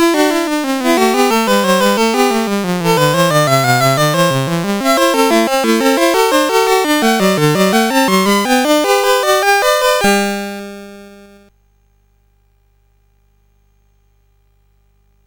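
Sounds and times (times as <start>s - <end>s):
baroque variations as SID chiptune music on CSG8580R5: 0.0s - 11.5s.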